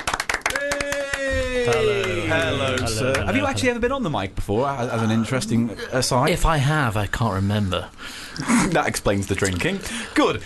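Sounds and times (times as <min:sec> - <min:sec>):
hand clapping welcoming a guest: 0:00.0 - 0:03.4
speech: 0:01.7 - 0:10.4.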